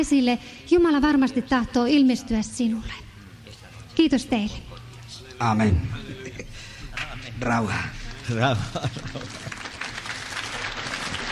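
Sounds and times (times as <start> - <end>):
speech: 0.0 - 3.1, 4.0 - 4.8, 5.4 - 6.0, 7.4 - 9.4
laughter: 5.7 - 6.8, 8.2 - 10.0
audience applauding: 8.1 - 11.3.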